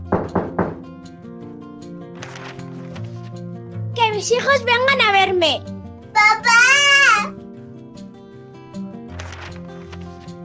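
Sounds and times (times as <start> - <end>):
knocking on a door: 0.0 - 1.0
speech: 4.2 - 6.7.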